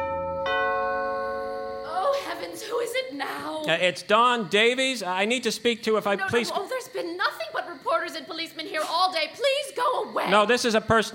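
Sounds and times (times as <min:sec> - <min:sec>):
doorbell ringing: 0:00.0 - 0:01.9
speech: 0:02.8 - 0:11.1.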